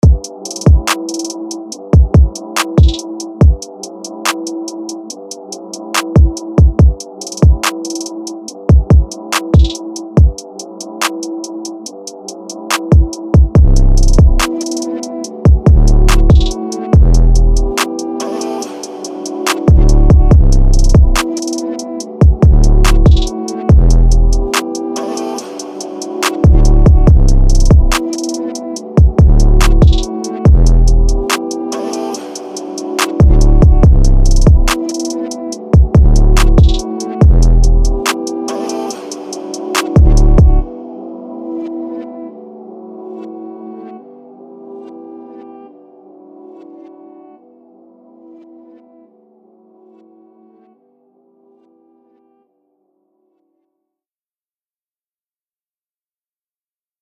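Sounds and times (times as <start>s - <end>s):
music beat: 0.0s - 40.7s.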